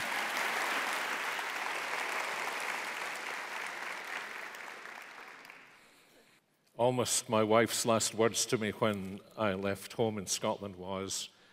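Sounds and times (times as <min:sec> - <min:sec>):
audience applause welcoming a speaker at a worship gathering: 0:00.0 - 0:05.8
speech: 0:06.8 - 0:11.4.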